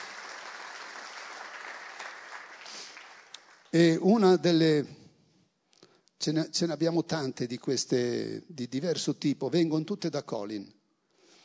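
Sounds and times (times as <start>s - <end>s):
audience applause: 0.0s - 3.7s
speech: 3.7s - 5.0s, 6.2s - 10.8s.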